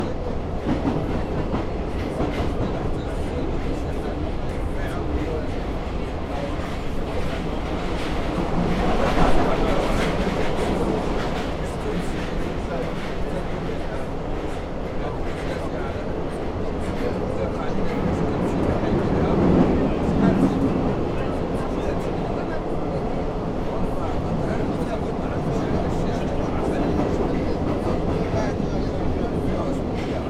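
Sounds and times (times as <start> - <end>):
Paris metro train: 0.0 - 30.2.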